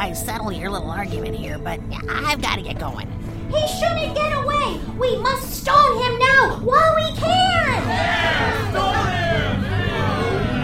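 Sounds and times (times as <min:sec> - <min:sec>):
speech: 0:00.0 - 0:08.9
restless crowd: 0:07.5 - 0:10.6.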